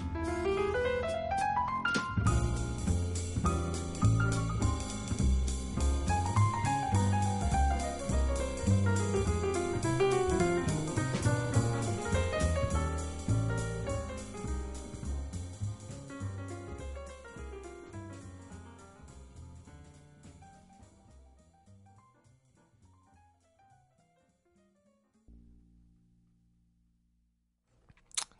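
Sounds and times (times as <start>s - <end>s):
walking bass: 0.0s - 1.1s, 2.2s - 21.2s
soft brushed drums: 0.0s - 23.5s
jazz piano lines: 0.0s - 26.6s.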